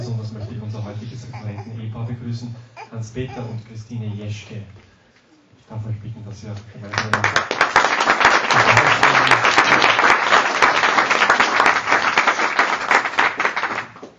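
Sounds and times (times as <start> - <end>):
speech: 1.2 - 4.8, 5.7 - 7.8
audience applause: 6.9 - 14.1.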